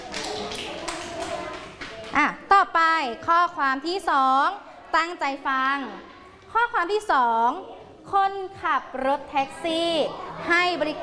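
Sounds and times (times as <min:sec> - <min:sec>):
classroom applause: 0:00.0 - 0:02.2
speech: 0:02.2 - 0:11.0.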